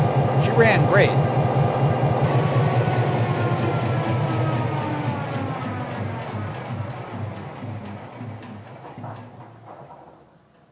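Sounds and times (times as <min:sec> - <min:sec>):
EMD E-8 diesel locomotive: 0:00.0 - 0:10.7.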